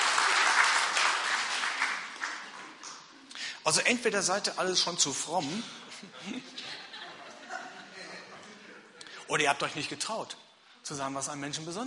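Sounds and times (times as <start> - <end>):
audience applause: 0.0 - 3.1
speech: 3.6 - 6.8, 9.3 - 11.8
laughter: 5.7 - 9.1.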